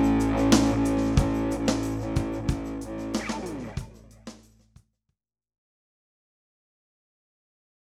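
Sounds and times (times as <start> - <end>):
guitar through a Tube Screamer overdrive pedal: 0.0 - 4.3.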